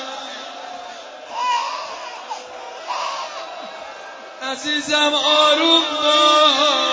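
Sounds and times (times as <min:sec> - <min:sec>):
baby crying: 0:01.3 - 0:03.5
speech: 0:04.5 - 0:06.8.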